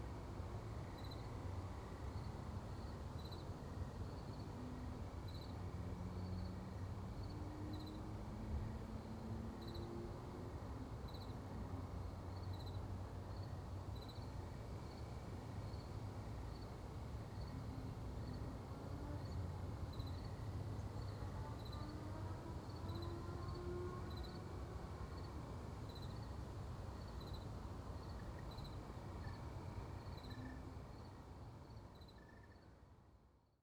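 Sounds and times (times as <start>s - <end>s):
backyard ambience near road: 0.0s - 33.6s.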